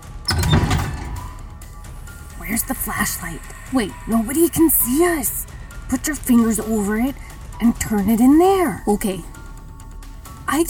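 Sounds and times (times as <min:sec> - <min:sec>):
door opening: 0:00.0 - 0:01.6
speech: 0:02.5 - 0:09.3.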